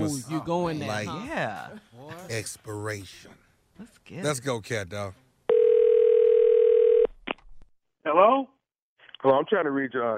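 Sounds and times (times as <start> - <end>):
speech: 0.0 - 5.2, 8.0 - 8.6, 9.2 - 10.1
telephone dial tone: 5.5 - 7.1.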